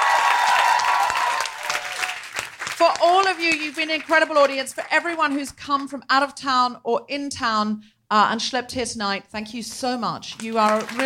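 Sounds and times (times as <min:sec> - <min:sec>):
audience cheering: 0:00.0 - 0:02.6
audience applause: 0:00.0 - 0:04.4, 0:10.4 - 0:11.0
speech: 0:03.0 - 0:11.0.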